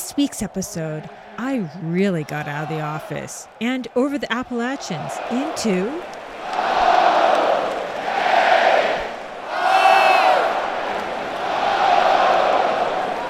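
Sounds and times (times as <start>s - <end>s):
football stadium crowd of fans cheering: 0.0s - 13.2s
speech: 0.2s - 6.8s.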